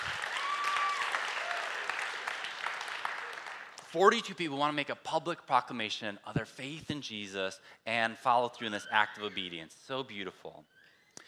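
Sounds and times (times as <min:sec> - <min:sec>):
church congregation applauding after a baptism announcement: 0:00.0 - 0:03.9
speech: 0:03.9 - 0:10.8.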